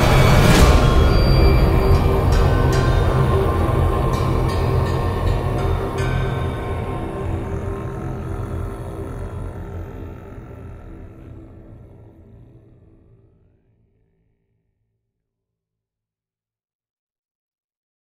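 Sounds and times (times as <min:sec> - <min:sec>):
epic intense horror trailer music: 0:00.0 - 0:13.2.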